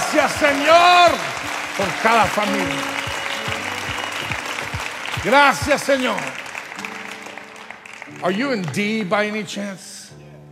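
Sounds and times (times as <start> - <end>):
regular low thump: 0.0 - 6.3
audience applause: 0.0 - 9.1
speech: 0.1 - 3.6, 5.2 - 6.4, 8.1 - 9.9.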